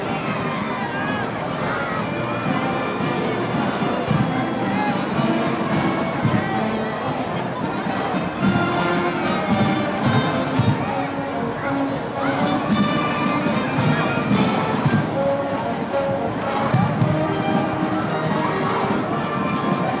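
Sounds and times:
children's parade crowd cheering and chattering: 0.0 - 19.9
marching band: 0.0 - 19.9.

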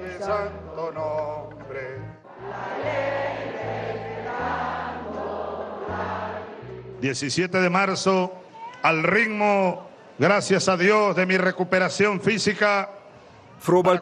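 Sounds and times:
music playing at rally: 0.0 - 7.9
speech: 0.1 - 3.3, 7.0 - 13.0, 13.6 - 14.0
crowd cheering at rally: 2.3 - 6.8.

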